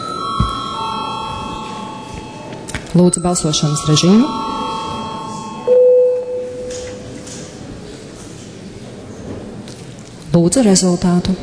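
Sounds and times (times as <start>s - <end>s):
parliament voting bell ringing: 0.0s - 7.1s
speech: 3.0s - 4.5s, 10.4s - 11.4s.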